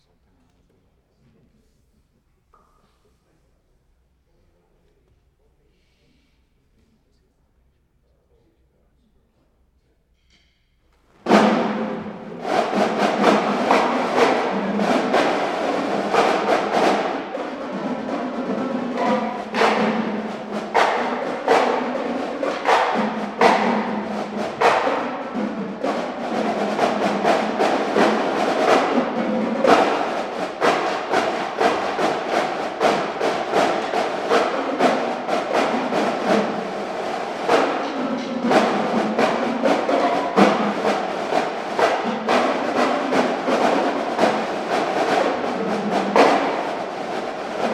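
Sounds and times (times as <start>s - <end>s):
drum solo: 11.2s - 47.7s.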